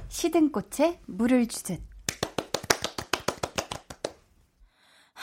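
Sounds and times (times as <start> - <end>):
speech: 0.1 - 1.9
audience applause: 2.2 - 4.1.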